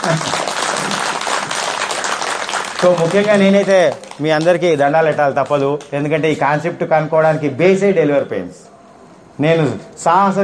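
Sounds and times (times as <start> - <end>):
audience applause in honour of the women present: 0.0 - 4.5
speech: 0.1 - 0.4, 2.8 - 8.7, 9.4 - 10.4.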